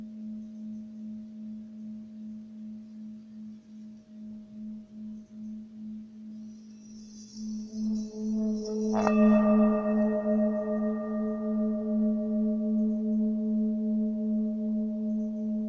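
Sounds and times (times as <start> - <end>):
faint high jingle: 2.7 - 15.5
Tibetan bell humming and struck: 4.2 - 15.6.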